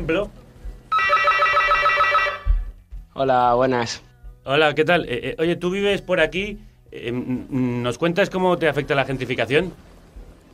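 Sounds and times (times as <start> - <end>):
speech: 0.0 - 0.4, 3.2 - 9.9
apartment intercom buzzer ringing: 0.9 - 2.7.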